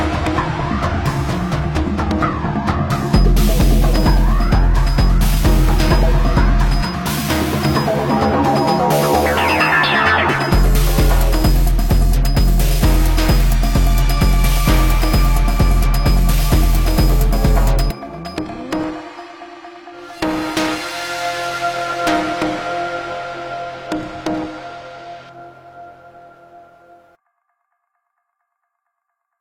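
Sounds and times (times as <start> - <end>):
deep dark techno music: 0.0 - 27.2.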